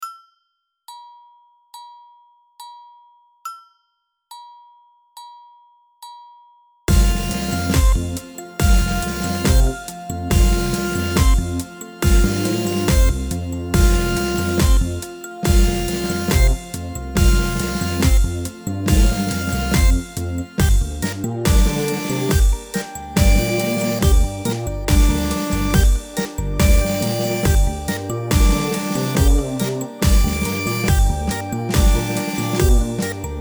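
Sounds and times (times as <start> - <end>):
funk music: 6.9 - 33.3.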